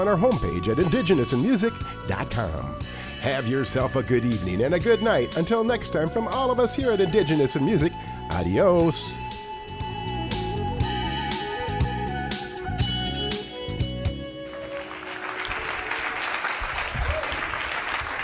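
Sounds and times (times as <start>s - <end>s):
speech: 0.0s - 9.2s
upbeat tune with steady beats: 0.0s - 15.3s
crowd applause: 14.5s - 18.2s.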